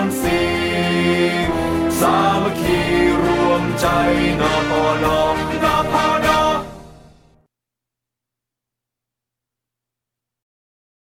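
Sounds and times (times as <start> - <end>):
orchestra: 0.0 - 7.4.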